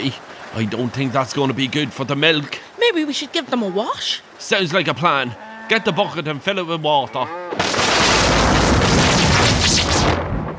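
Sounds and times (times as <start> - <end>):
speech: 0.0 - 7.8
thunder crash from lightning: 7.6 - 10.5.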